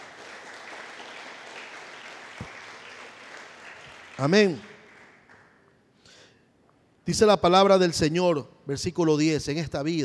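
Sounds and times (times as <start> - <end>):
church congregation applause for Christ: 0.0 - 5.7
speech: 4.2 - 4.7, 7.1 - 10.0.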